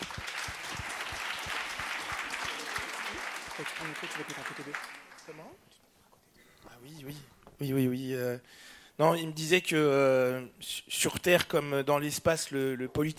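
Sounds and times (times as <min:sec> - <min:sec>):
audience applause: 0:00.0 - 0:05.6
speech: 0:03.6 - 0:05.8, 0:06.6 - 0:13.1.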